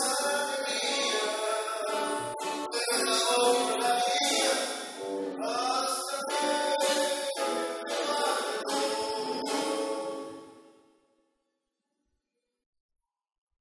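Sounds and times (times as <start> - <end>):
tango music: 0.8 - 10.5.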